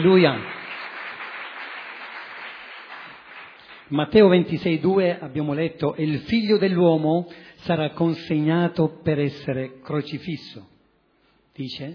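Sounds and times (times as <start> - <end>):
speech: 0.0 - 0.5, 3.9 - 10.7, 11.6 - 11.9
audience applauding: 0.0 - 3.9.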